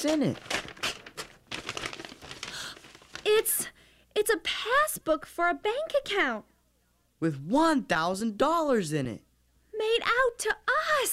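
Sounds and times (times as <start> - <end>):
speech: 0.0 - 0.6, 3.4 - 6.5, 7.2 - 9.2, 9.8 - 11.1
paper envelope being opened: 0.0 - 3.5.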